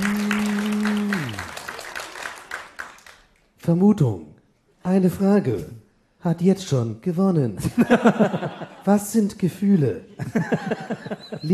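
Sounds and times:
audience clapping: 0.0 - 3.6
speech: 3.7 - 11.5
laughter: 7.6 - 9.0, 9.6 - 11.5.

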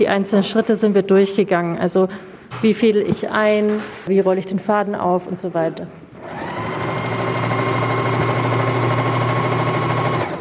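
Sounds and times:
speech: 0.0 - 6.4
sewing machines running: 6.2 - 10.3.

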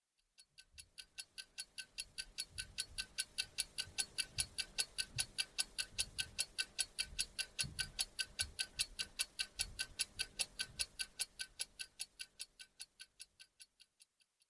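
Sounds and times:
ticking clock: 0.0 - 14.4.

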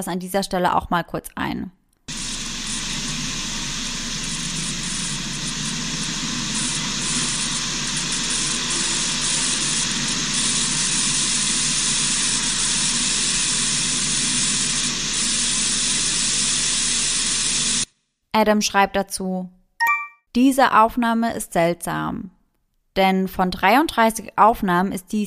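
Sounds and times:
speech: 0.0 - 1.8, 18.4 - 19.6, 20.4 - 22.4, 23.0 - 25.2
strange electrical hum: 2.1 - 17.8.

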